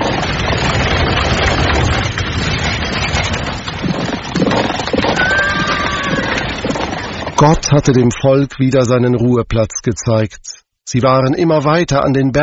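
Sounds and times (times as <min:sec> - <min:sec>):
horse-drawn war chariots rattling and thundering: 0:00.0 - 0:08.9
speech: 0:07.4 - 0:12.4.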